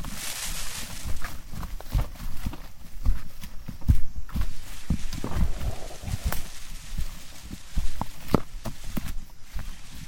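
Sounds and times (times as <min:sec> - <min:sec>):
footsteps crunching on rainforest trail in Tambopata Reserve Peru: 0:00.0 - 0:10.0
steady bright hiss of insects or foliage: 0:00.0 - 0:10.0
sharp snaps and scuffs: 0:05.0 - 0:09.1.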